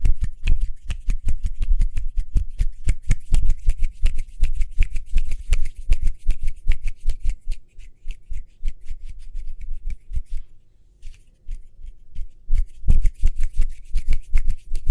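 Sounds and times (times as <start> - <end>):
fast hand snips and taps: 0.0 - 14.8.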